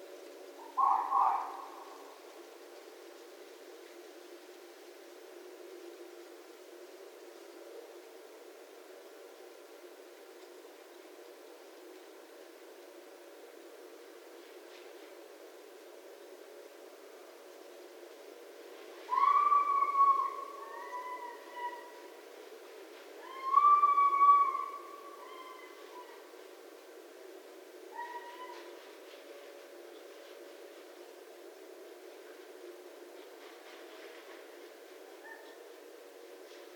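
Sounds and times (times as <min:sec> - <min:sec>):
red fox calling: 0:00.6 - 0:02.2, 0:19.1 - 0:22.2, 0:23.2 - 0:26.3, 0:27.9 - 0:28.8, 0:35.1 - 0:35.6.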